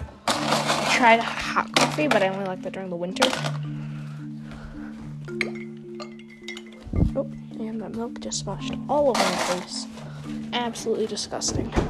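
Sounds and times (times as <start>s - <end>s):
ice cubes clinking into a glass: 0.3s - 2.4s, 3.2s - 3.6s, 9.2s - 9.8s
speech: 1.0s - 3.9s, 7.0s - 11.8s.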